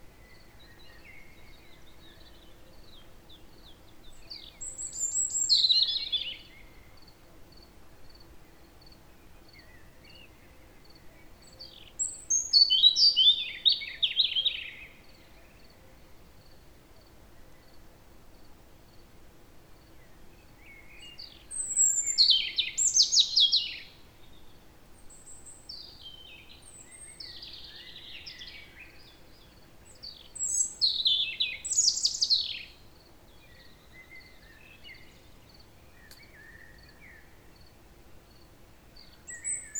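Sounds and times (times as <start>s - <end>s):
European robin singing: 0.0s - 7.2s, 8.5s - 16.0s, 20.0s - 39.7s.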